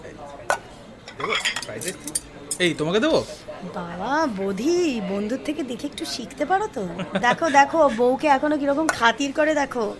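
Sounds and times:
dishes clinking as food is served onto plates: 0:00.4 - 0:02.8
speech: 0:01.2 - 0:09.9.

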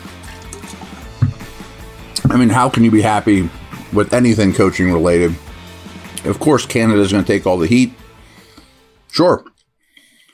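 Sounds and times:
sipping water: 0:00.3 - 0:05.0
speech: 0:02.3 - 0:05.5, 0:06.2 - 0:08.0, 0:09.2 - 0:09.5.

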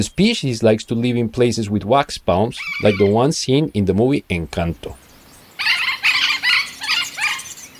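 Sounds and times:
speech: 0:00.0 - 0:05.0
parrot squawking: 0:02.6 - 0:03.2, 0:05.6 - 0:07.7.

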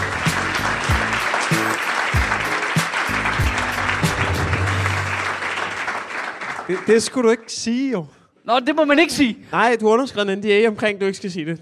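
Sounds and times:
talk show audience applause welcoming a guest: 0:00.0 - 0:07.5
speech: 0:06.7 - 0:11.5.

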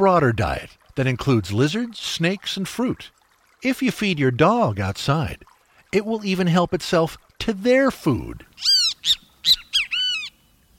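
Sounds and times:
speech: 0:00.0 - 0:09.6
Great Kiskadee calling loudly: 0:08.6 - 0:10.5.

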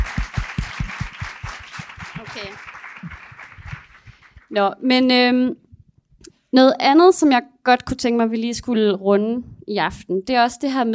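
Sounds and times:
audience applause: 0:00.0 - 0:04.5
speech: 0:02.3 - 0:02.7, 0:04.5 - 0:05.6, 0:06.5 - 0:10.9.

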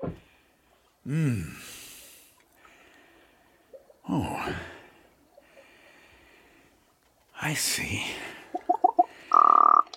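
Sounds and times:
speech: 0:01.0 - 0:01.8, 0:04.2 - 0:04.7, 0:07.5 - 0:08.3
raven croaking: 0:08.5 - 0:09.9.

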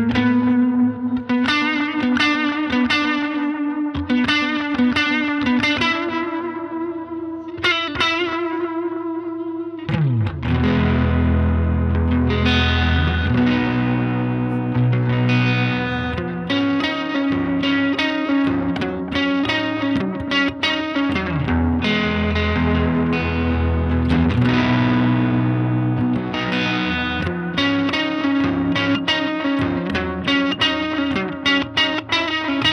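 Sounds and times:
electric guitar played through neck pickup: 0:00.0 - 0:32.7.

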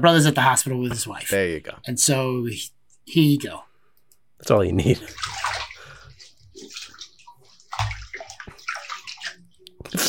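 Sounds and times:
speech: 0:00.0 - 0:03.7, 0:04.4 - 0:05.6
bathwater splashing and sloshing in a bathtub as a child is bathed: 0:04.7 - 0:10.0.

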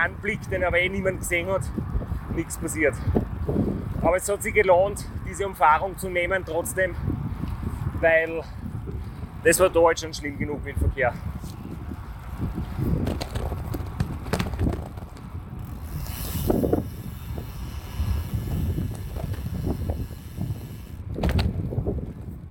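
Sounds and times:
speech: 0:00.0 - 0:07.1, 0:08.0 - 0:08.6, 0:09.4 - 0:11.6
heavy gusting wind rumble: 0:00.0 - 0:22.5
bicycle freewheel hub buzzing: 0:15.5 - 0:21.0.

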